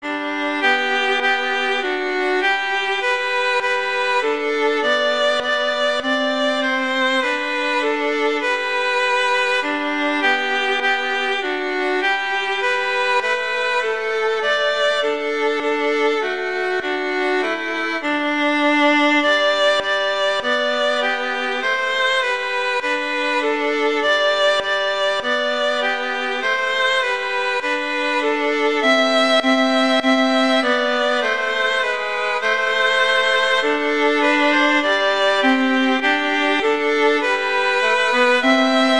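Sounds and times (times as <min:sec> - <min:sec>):
violin duet playing a Christmas carol: 0:00.0 - 0:38.9.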